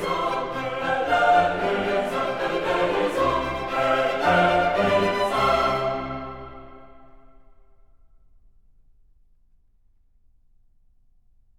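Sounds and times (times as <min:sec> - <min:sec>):
psalm setting in F major: 0:00.0 - 0:07.5.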